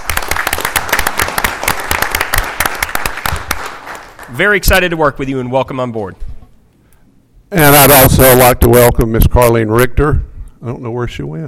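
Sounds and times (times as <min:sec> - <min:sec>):
audience applause: 0:00.0 - 0:04.4
speech: 0:04.3 - 0:06.2, 0:07.5 - 0:11.4.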